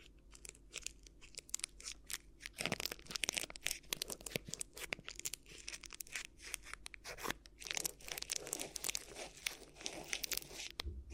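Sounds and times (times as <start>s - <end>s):
crinkly ear massage rustles and crunches: 0.0s - 11.1s
steady low hum: 10.8s - 11.1s.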